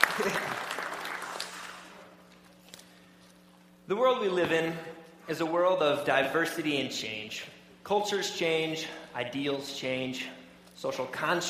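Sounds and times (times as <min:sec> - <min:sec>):
crowd clapping: 0:00.0 - 0:02.1
speech: 0:03.9 - 0:11.4.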